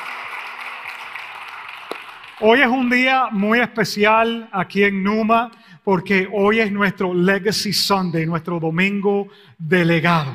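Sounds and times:
audience applause: 0.0s - 2.9s
speech: 2.4s - 10.3s.

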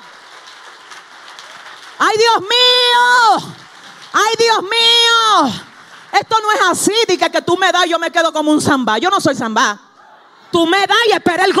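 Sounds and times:
audience applause: 0.0s - 6.8s
speech: 2.0s - 2.7s, 3.4s - 9.9s, 10.5s - 11.5s.

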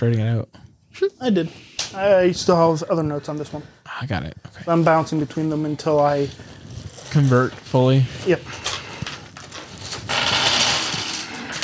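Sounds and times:
speech: 0.0s - 8.7s
dice rattling on a hard surface: 9.0s - 11.6s.

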